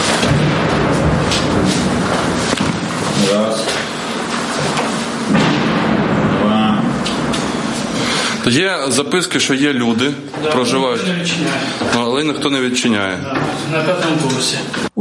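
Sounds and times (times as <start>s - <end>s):
explosions: 0.0s - 9.0s
speech: 8.5s - 14.9s.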